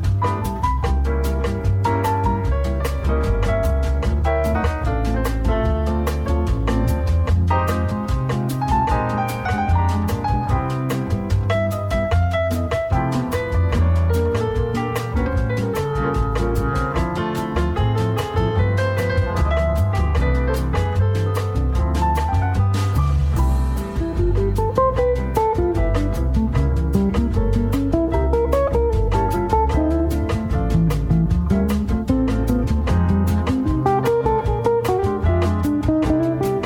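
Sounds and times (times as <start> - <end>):
bossa nova music: 0.0 - 36.6.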